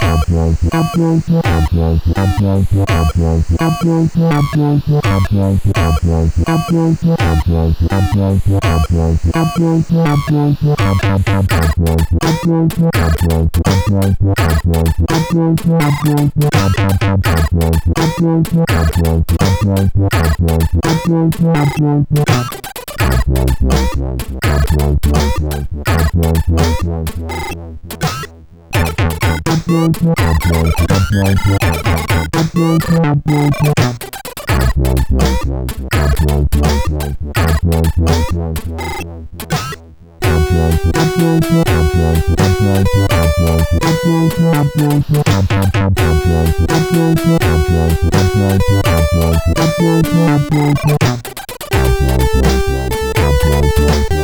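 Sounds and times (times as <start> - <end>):
CSG 8580 sound chip: 0.0 - 21.0, 21.6 - 54.2.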